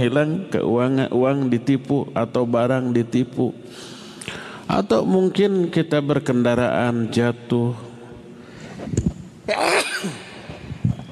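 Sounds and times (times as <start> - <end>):
speech: 0.0 - 7.9, 8.8 - 10.2
person sneezing: 9.5 - 10.5.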